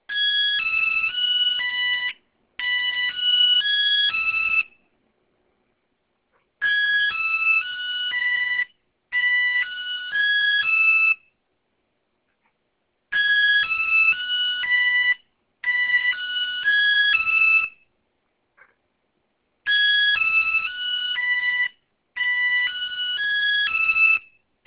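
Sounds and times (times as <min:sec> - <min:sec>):
Sigma alarm clock ringing: 0:00.1 - 0:04.7, 0:06.6 - 0:11.2, 0:13.2 - 0:17.8, 0:19.7 - 0:24.2.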